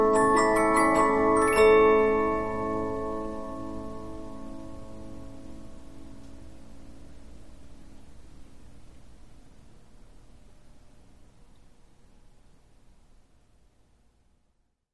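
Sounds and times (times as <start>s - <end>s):
Polyphon 15-inch disc music box playing: 0.0s - 4.6s.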